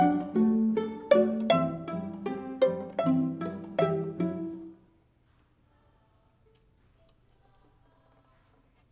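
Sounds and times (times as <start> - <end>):
violin: 0.0 - 4.8.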